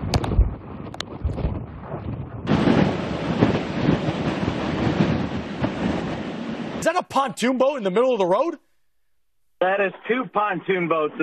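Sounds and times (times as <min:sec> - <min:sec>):
hurricane wind gusts: 0:00.0 - 0:08.5
speech: 0:06.9 - 0:08.7, 0:09.6 - 0:11.2.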